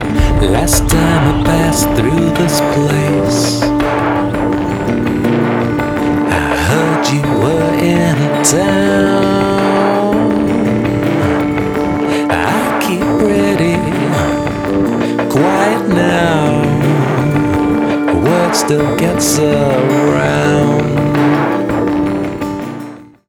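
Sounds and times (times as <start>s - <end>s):
person singing a verse: 0.0s - 22.1s.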